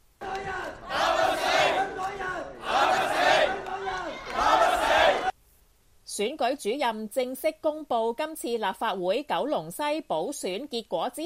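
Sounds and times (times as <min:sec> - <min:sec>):
supporters clapping and cheering: 0:00.2 - 0:05.4
speech: 0:06.2 - 0:11.2.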